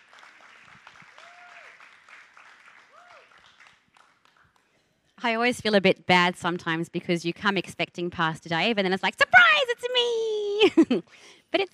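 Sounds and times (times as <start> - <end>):
church congregation applauding at a morning service: 0.0 - 4.7
speech: 5.2 - 11.7.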